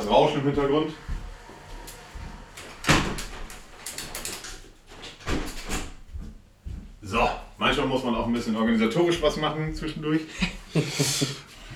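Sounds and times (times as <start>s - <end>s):
speech: 0.1s - 1.1s, 7.1s - 11.4s
window being closed: 1.9s - 3.8s
laughter: 10.3s - 11.7s.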